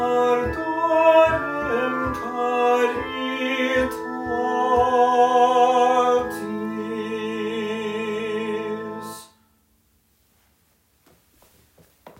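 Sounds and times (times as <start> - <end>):
tenor singing: 0.0 - 9.5.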